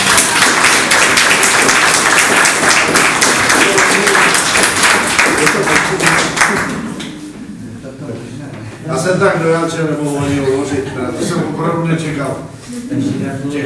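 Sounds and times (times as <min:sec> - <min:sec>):
audience applause: 0:00.0 - 0:07.0
speech: 0:09.1 - 0:13.6.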